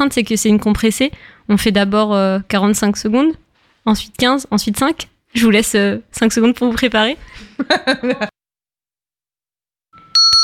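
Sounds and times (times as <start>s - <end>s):
speech: 0.0s - 8.3s
laughter: 7.4s - 8.4s
radio station bell chime: 10.0s - 10.4s.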